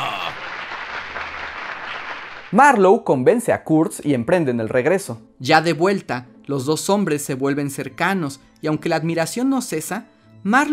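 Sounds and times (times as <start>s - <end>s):
applause: 0.0s - 2.8s
speech: 2.5s - 10.7s.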